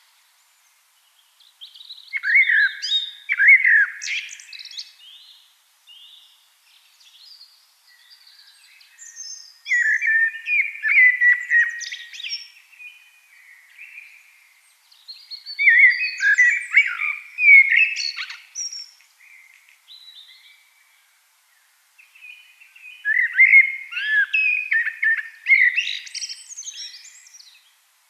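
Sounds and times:
Eurasian blackbird fluted song: 0.0s - 27.8s.

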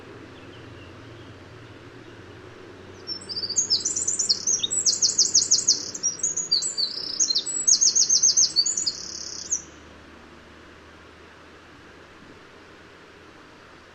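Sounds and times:
Eurasian wren singing: 0.0s - 2.2s, 2.8s - 9.9s
faint low background hum: 0.0s - 13.9s.

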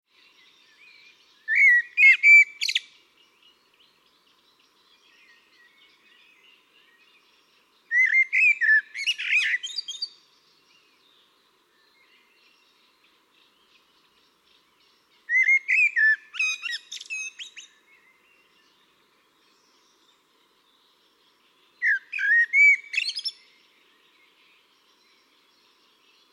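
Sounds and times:
Eurasian blackbird fluty whistled song: 1.5s - 2.9s, 7.9s - 10.1s, 15.3s - 17.7s, 21.8s - 23.4s.

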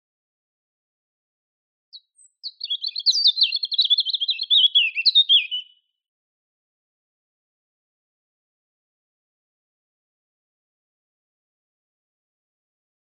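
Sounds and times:
European robin Erithacus rubecula singing: 1.9s - 5.9s.

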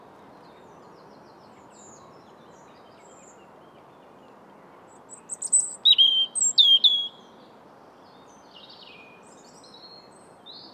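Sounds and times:
European robin song: 5.2s - 7.2s.

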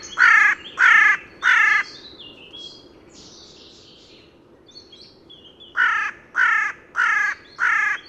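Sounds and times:
carrion crow hoarse grating caws: 0.0s - 1.9s, 5.8s - 8.0s.

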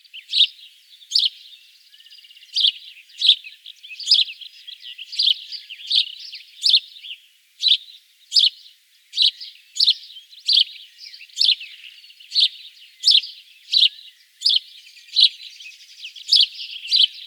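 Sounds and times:
house sparrow chirping: 0.0s - 17.2s.

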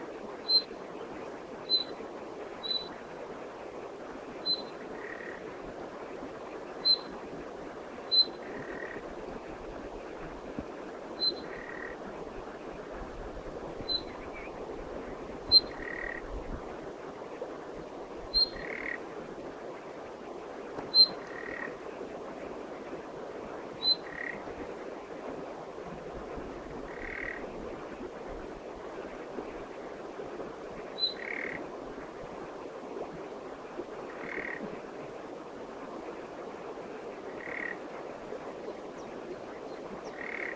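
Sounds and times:
background hiss: 0.0s - 40.5s
common nightingale calling: 0.4s - 0.7s, 1.7s - 2.0s, 2.6s - 2.9s, 4.4s - 5.3s, 6.8s - 7.1s, 8.1s - 8.4s, 11.2s - 11.9s, 13.9s - 14.5s, 15.5s - 16.2s, 18.3s - 19.0s, 20.9s - 21.6s, 31.0s - 31.6s.

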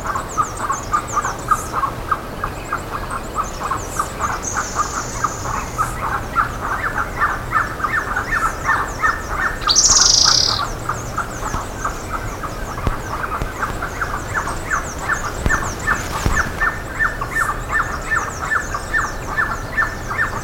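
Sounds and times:
steady background hiss: 0.0s - 20.3s
bird calls of repeated clipped downslurred notes: 9.6s - 16.9s.

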